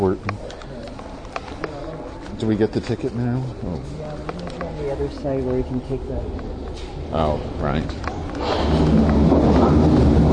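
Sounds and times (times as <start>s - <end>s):
speech: 2.4s - 10.2s
loud passing train: 4.7s - 10.3s.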